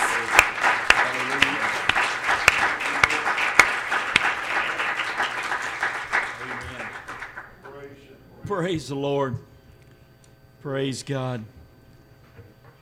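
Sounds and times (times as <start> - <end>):
audience applause, hand clap of praise: 0.0 - 7.6
speech: 8.5 - 9.5, 10.6 - 11.6.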